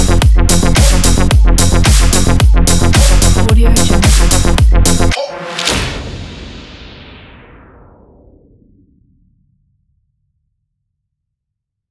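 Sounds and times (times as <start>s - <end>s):
modern cyberpunk music: 0.0s - 6.4s.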